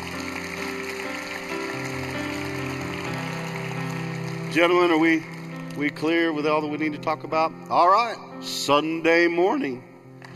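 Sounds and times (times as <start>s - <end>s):
audience applauding: 0.0s - 6.5s
speech: 4.5s - 10.3s.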